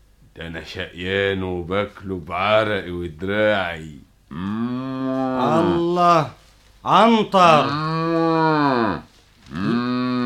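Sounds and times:
speech: 0.4 - 7.9
bull mooing: 4.3 - 5.9, 7.5 - 10.2.

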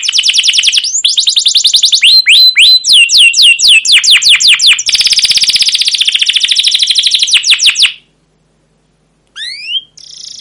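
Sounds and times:
canary song: 0.0 - 8.2, 9.2 - 10.3.

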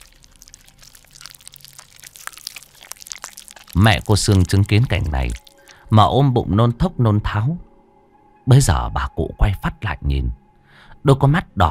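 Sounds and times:
crunchy wet chewing of raw frogs: 0.0 - 6.0
speech: 3.8 - 7.7, 8.5 - 10.4, 11.0 - 11.6.

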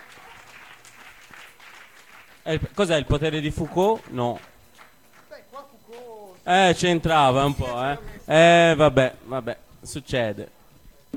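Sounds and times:
audience clapping at a poetry reading: 0.0 - 6.1
speech: 2.4 - 4.5, 6.4 - 10.6.

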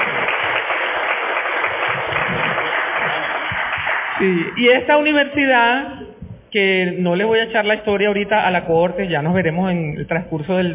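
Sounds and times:
applause for an arriving colleague: 0.0 - 4.4
speech: 4.2 - 10.7.

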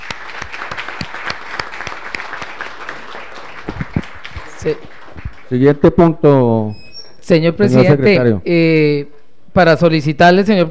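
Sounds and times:
audience applause: 0.0 - 5.8
speech: 4.6 - 10.6.

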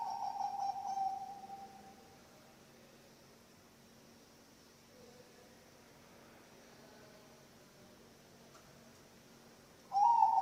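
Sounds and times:
zebra dove cooing: 0.0 - 1.8, 9.9 - 10.4.

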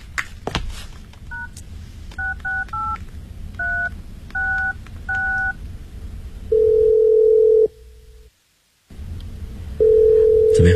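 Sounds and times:
short two-tone keypad beeps dialling a number: 2.2 - 3.0, 3.6 - 5.6
steady low ringback tone of an unanswered call: 6.5 - 7.7, 9.8 - 10.7.

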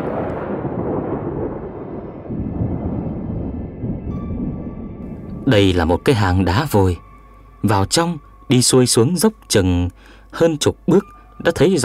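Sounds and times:
rumbling thunder: 0.0 - 6.1
speech: 5.5 - 7.0, 7.6 - 11.8.

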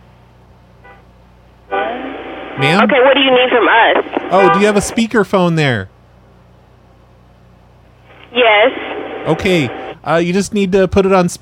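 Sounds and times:
car horns honking: 0.8 - 1.1, 4.4 - 4.8
speech: 2.6 - 5.9, 8.4 - 11.4.

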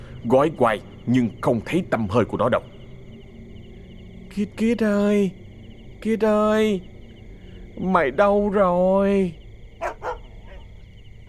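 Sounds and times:
speech: 0.2 - 2.7, 4.3 - 5.4, 6.0 - 6.9, 7.8 - 9.4
dog barking outside beyond the wall: 9.8 - 11.2.

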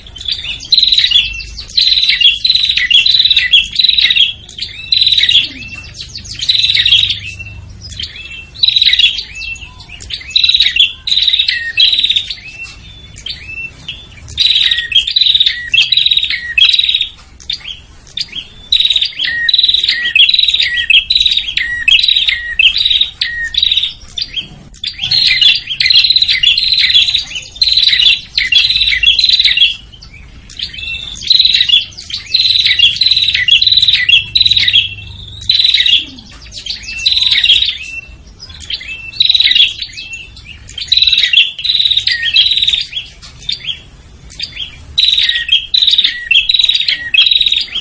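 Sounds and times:
prinia buzzy calls and whistles: 0.0 - 47.7.

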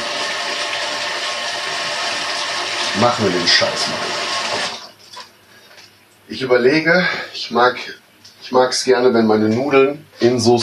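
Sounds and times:
tap water running while washing hands: 0.0 - 5.3
speech: 3.0 - 4.2, 6.3 - 10.6.

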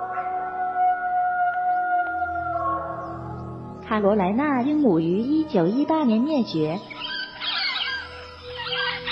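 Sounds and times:
Falkland Islands wolf vocalizing: 0.0 - 3.1, 6.9 - 9.1
speech: 3.9 - 7.1.

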